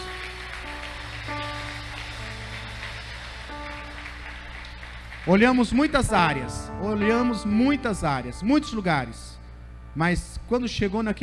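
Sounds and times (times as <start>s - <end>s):
audience applauding: 0.0s - 7.3s
sustained keyboard chords: 0.0s - 11.2s
speech: 5.2s - 9.4s, 10.0s - 11.2s.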